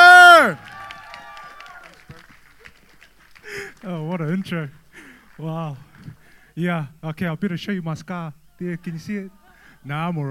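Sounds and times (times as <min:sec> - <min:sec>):
cheers and high whoops: 0:00.0 - 0:02.1
audience applause: 0:00.4 - 0:06.1
speech: 0:04.2 - 0:04.8, 0:05.4 - 0:10.2.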